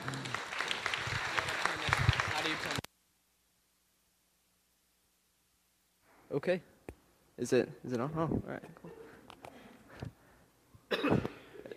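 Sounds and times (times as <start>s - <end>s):
audience applause: 0.0s - 2.9s
speech: 6.4s - 6.7s, 7.4s - 9.0s.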